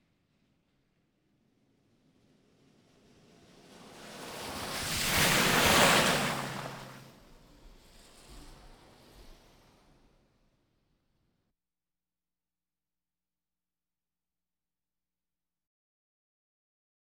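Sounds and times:
various automobiles: 3.8 - 7.2.

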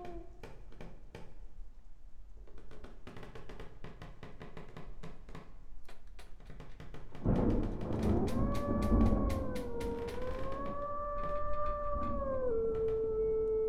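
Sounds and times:
spooky room ambience loop: 7.2 - 13.5.

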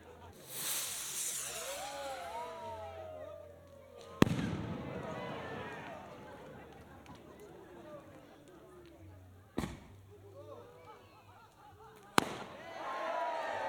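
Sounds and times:
people at a firework display: 0.0 - 13.6
firework display outdoors: 0.3 - 3.2, 4.0 - 8.2, 12.2 - 12.6.

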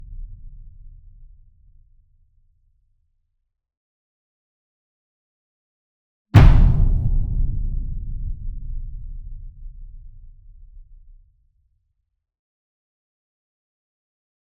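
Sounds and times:
single 66 inch drum flam with soft beater: 6.4 - 11.1.

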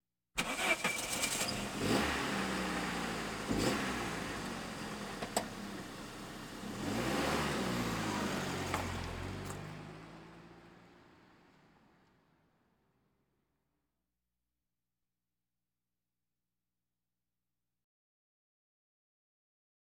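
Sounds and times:
various automobiles: 0.4 - 12.9.

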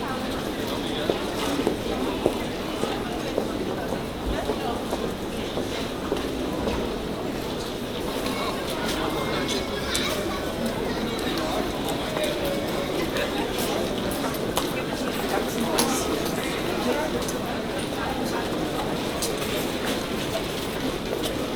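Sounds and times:
crowd footsteps: 0.0 - 21.5.

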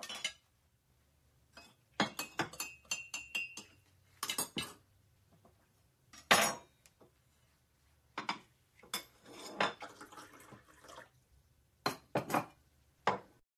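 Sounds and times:
dishes clattering in background: 0.0 - 0.4, 1.6 - 4.8, 8.2 - 10.0, 11.9 - 13.3.

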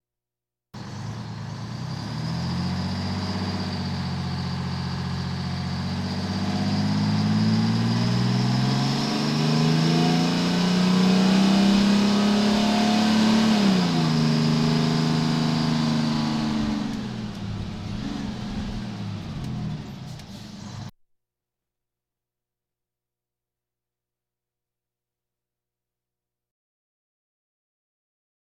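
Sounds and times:
fire engine sirens: 0.8 - 20.9.

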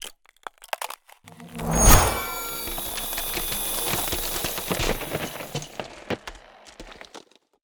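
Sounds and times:
ice spell cold whooshes: 1.3 - 5.5.

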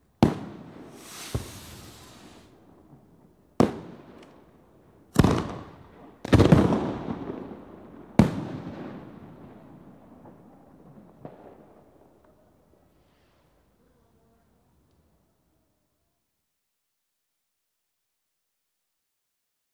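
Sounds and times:
firework display outdoors: 0.2 - 13.2
people at an outdoor firework display: 12.2 - 15.7.

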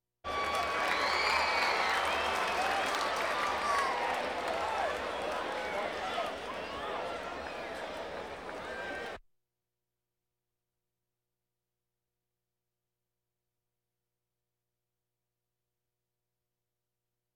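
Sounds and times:
crowds: 0.2 - 9.2.

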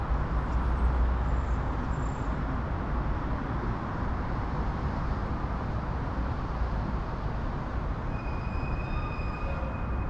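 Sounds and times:
moderately busy urban and suburban traffic: 0.0 - 10.0.

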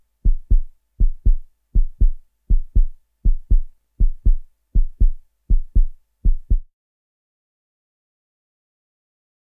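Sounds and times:
fast heartbeat: 0.2 - 6.7.

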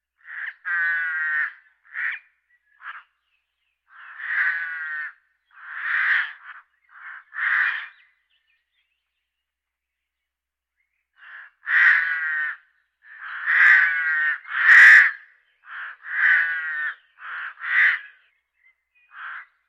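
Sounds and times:
birds: 0.0 - 19.6.

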